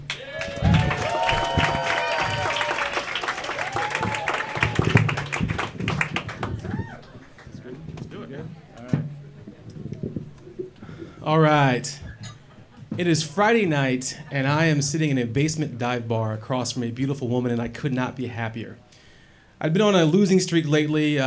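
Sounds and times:
audience applause: 0.0 - 7.9
speech: 11.3 - 12.0, 13.0 - 18.8, 19.6 - 21.2.

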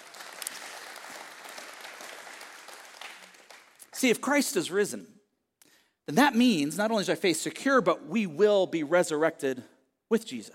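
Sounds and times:
audience clapping: 0.0 - 4.4
speech: 4.0 - 5.2, 6.1 - 10.5.

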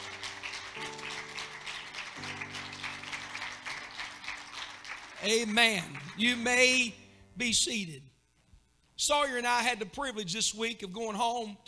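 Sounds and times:
audience clapping hands: 0.0 - 6.9
sustained low keyboard chords: 0.0 - 7.6
speech: 5.2 - 8.1, 9.0 - 11.6.

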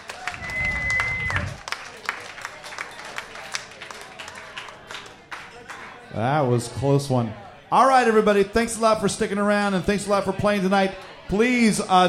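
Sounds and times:
audience applause at live pub quiz: 0.0 - 5.8
speech: 6.2 - 12.0.

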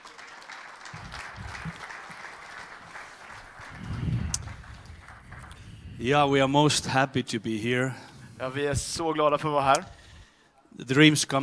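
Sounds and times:
church audience applause: 0.0 - 5.8
speech: 6.0 - 10.0, 10.8 - 11.4.

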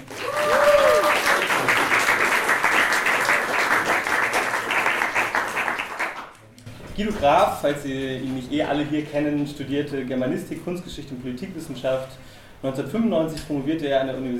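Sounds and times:
audience applause: 0.0 - 6.4
speech: 7.0 - 14.3.

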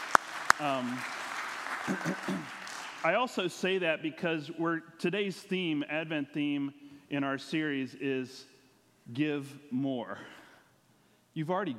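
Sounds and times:
audience applause: 0.0 - 3.2
speech: 0.6 - 1.2, 1.8 - 8.5, 9.1 - 10.4, 11.4 - 11.7.

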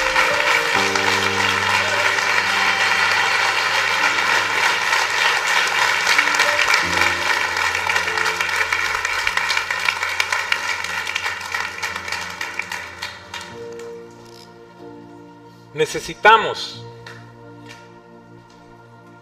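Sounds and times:
church audience applauding: 0.0 - 14.5.

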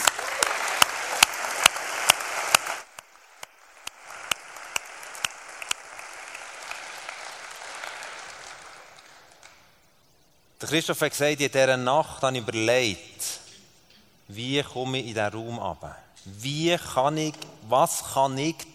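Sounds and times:
audience applause: 0.0 - 9.7
speech: 10.6 - 13.4, 14.3 - 18.7.

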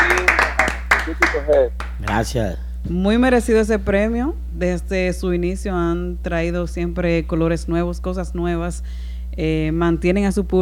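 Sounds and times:
audience applause: 0.0 - 2.3
speech: 1.5 - 10.6.

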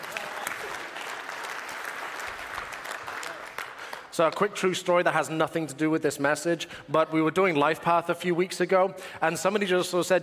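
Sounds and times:
audience applause: 0.0 - 4.2
speech: 4.2 - 10.2.

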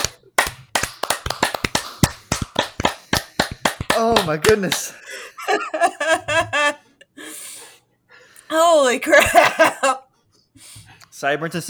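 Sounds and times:
hand clapping: 0.0 - 5.0
laughter: 2.9 - 7.0, 9.1 - 10.1
speech: 4.0 - 6.8, 8.5 - 10.0, 10.6 - 11.6.

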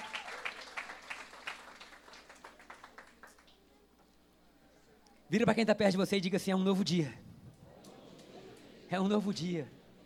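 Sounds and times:
audience applauding: 0.0 - 3.6
speech: 5.3 - 7.2, 8.9 - 9.8.

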